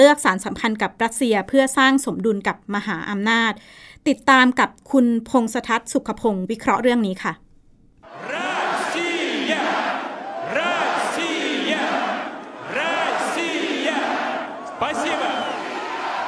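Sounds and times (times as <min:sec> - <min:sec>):
speech: 0:00.0 - 0:07.4
crowd cheering in Red Square in Moscow: 0:08.1 - 0:16.2.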